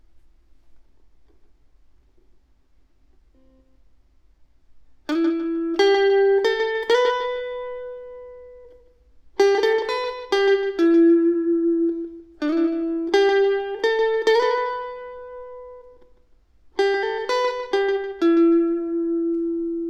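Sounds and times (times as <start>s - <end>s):
electric guitar: 5.1s - 19.8s.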